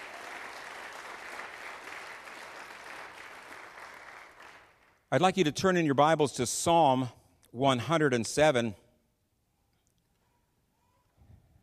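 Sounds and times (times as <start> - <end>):
audience clapping hands: 0.0 - 5.1
speech: 5.1 - 8.8.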